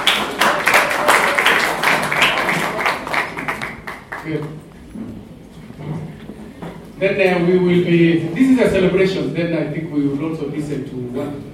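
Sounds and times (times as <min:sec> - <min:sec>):
audience clapping: 0:00.0 - 0:04.8
speech: 0:04.3 - 0:05.1, 0:07.0 - 0:11.5.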